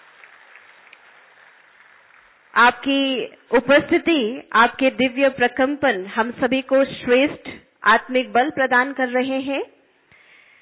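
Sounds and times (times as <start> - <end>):
audience applause welcoming guests: 0.0 - 2.6
speech: 2.6 - 9.8.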